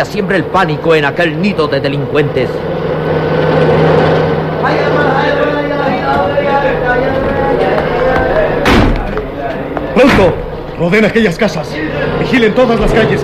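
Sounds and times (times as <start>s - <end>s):
speech: 0.0s - 2.9s, 10.0s - 13.2s
busy noise: 0.0s - 13.2s
low hum: 0.0s - 13.2s
vehicles speeding into a neighborhood: 0.0s - 13.2s.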